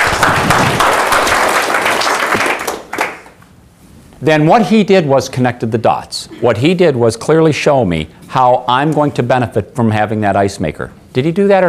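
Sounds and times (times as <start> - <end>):
audience round of applause: 0.0 - 3.4
speech: 4.2 - 11.6.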